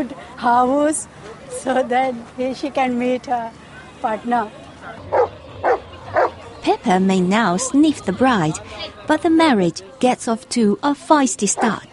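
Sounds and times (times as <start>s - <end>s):
speech: 0.0s - 5.2s, 6.6s - 11.9s
golden retrievers barking: 4.8s - 6.4s, 11.6s - 11.8s.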